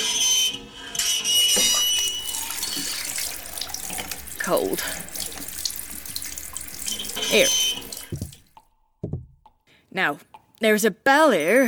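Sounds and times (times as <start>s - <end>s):
bathroom tap running water: 1.5s - 9.2s
speech: 4.5s - 5.1s, 7.3s - 7.6s, 10.0s - 11.6s.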